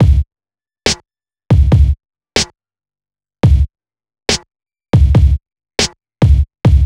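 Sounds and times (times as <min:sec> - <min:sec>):
hip hop drum beat: 0:00.0 - 0:00.2, 0:00.9 - 0:02.5, 0:03.4 - 0:03.7, 0:05.0 - 0:06.8.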